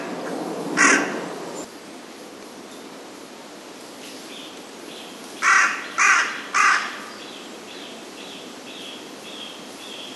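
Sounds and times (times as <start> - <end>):
carrion crow cawing: 0.8 - 1.2, 5.4 - 7.1.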